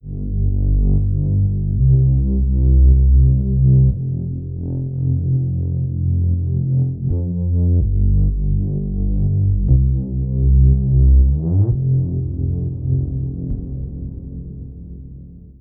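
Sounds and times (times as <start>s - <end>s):
bass: 0.0s - 15.5s.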